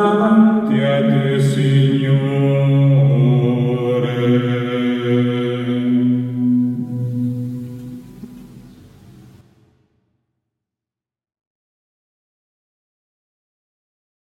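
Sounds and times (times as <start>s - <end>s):
contralto choir section singing: 0.0s - 9.4s.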